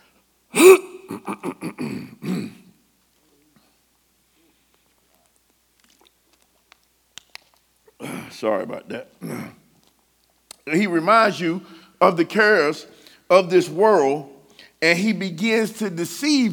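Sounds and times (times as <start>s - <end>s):
speaker drinking water: 0.6s - 2.7s
speech: 8.4s - 9.4s, 10.7s - 16.5s.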